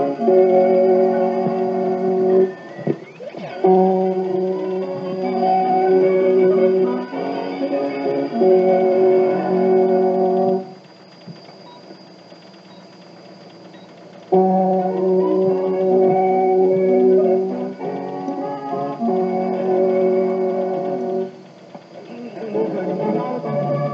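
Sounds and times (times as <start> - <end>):
interval signal tune of organ-like notes: 0.0 - 23.9
thin steady high whine: 0.0 - 23.9.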